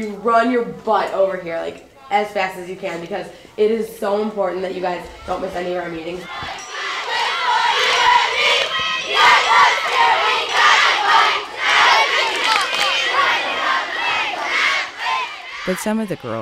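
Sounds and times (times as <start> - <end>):
speech: 0.0 - 6.6, 15.7 - 16.4
group of girls cheering and shouting: 4.5 - 15.7.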